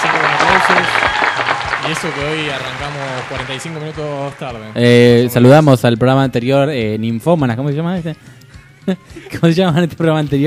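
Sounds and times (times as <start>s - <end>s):
crowd applauding: 0.0s - 5.6s
speech: 0.6s - 1.1s, 1.8s - 10.4s.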